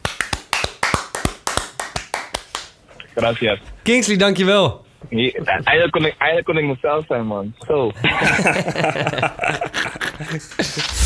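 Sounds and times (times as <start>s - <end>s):
short applause from a small group, sharp crisp hand claps: 0.0s - 2.8s
speech: 3.2s - 11.0s
laughter: 8.0s - 10.9s.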